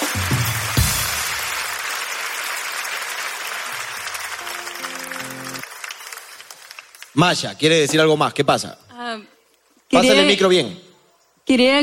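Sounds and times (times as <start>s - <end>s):
audience applause: 0.0s - 7.4s
speech: 7.2s - 9.3s, 9.9s - 10.8s, 11.5s - 11.8s.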